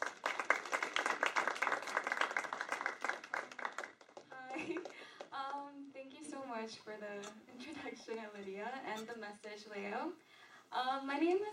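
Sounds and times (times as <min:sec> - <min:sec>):
audience applause: 0:00.0 - 0:05.3
speech: 0:06.7 - 0:10.2, 0:10.8 - 0:11.5.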